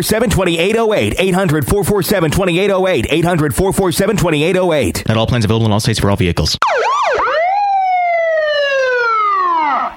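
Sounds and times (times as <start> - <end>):
speech: 0.0 - 7.0
police siren wailing: 6.6 - 9.9.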